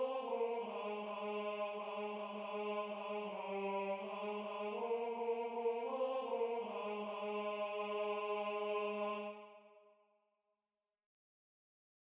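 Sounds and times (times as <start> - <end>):
tenor singing: 0.0 - 9.6.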